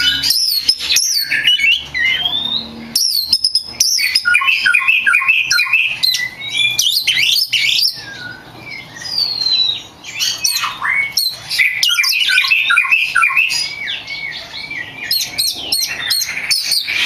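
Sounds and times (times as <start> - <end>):
champion Oriental magpie-robin singing a medley of whistles and trills: 0.0 - 16.9.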